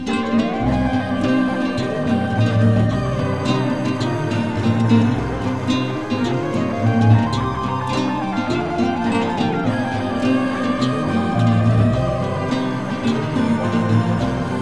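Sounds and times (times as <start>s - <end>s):
melody: 0.1s - 14.5s.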